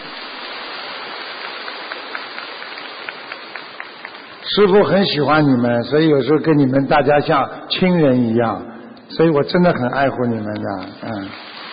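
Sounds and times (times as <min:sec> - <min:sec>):
audience applause: 0:01.0 - 0:04.5
speech: 0:04.5 - 0:11.5.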